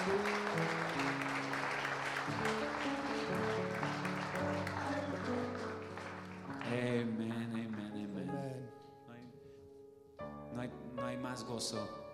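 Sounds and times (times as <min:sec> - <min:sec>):
crowd applauding: 0:00.0 - 0:08.4
speech: 0:11.6 - 0:12.0.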